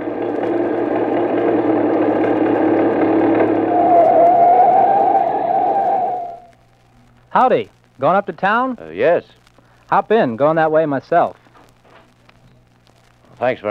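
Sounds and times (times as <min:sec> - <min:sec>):
car approaching: 0:00.0 - 0:06.5
speech: 0:07.4 - 0:11.4, 0:13.4 - 0:13.6.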